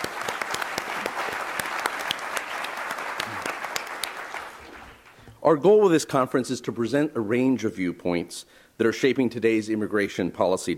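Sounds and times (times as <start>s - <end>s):
audience applause: 0.0s - 5.2s
speech: 5.5s - 10.7s.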